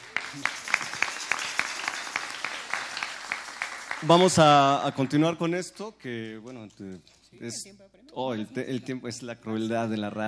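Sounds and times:
audience applause: 0.0 - 5.2
speech: 0.3 - 0.6, 4.0 - 10.2.

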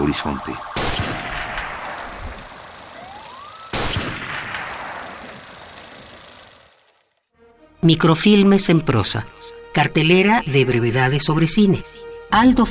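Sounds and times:
speech: 0.1 - 1.3, 7.8 - 12.6
gunshots: 0.5 - 7.0.

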